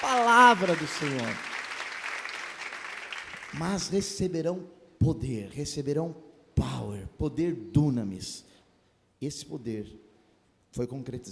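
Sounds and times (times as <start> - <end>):
audience applauding: 0.0 - 4.0
speech: 0.1 - 1.5, 3.5 - 8.5, 9.2 - 10.0, 10.8 - 11.3.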